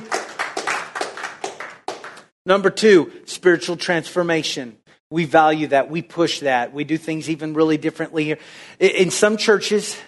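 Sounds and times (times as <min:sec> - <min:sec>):
audience clapping: 0:00.0 - 0:02.4
speech: 0:02.4 - 0:10.0.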